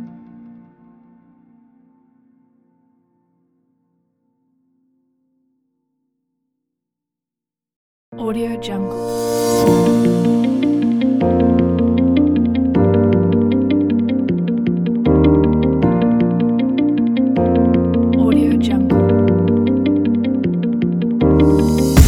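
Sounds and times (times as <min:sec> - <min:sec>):
music track: 0:08.4 - 0:22.0.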